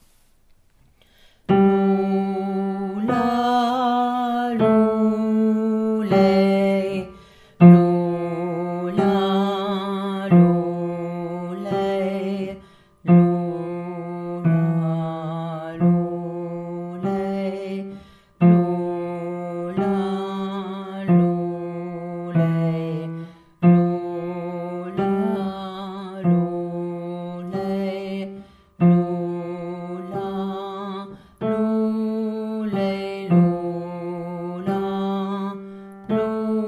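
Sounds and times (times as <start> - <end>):
lullaby: 1.5 - 36.6.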